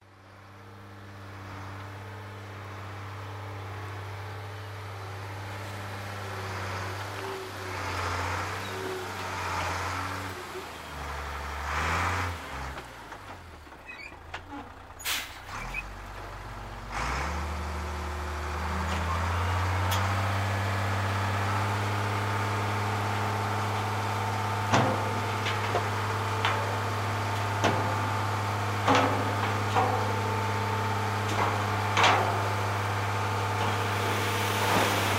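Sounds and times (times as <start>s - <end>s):
garbage truck loading garbage: 0.4s - 35.1s.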